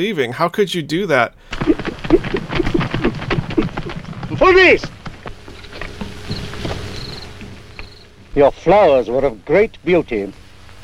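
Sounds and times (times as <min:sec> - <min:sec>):
speech: 0:00.0 - 0:02.4, 0:04.4 - 0:05.0, 0:08.4 - 0:10.4
horse riding up, hooves clip-clopping: 0:01.6 - 0:08.0.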